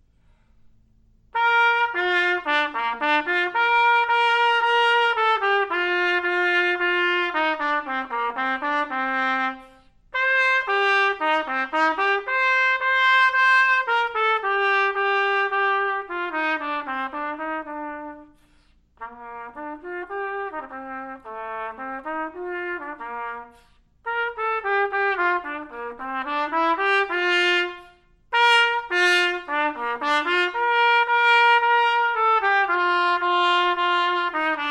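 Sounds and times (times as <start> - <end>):
trumpet piece: 1.3 - 34.6.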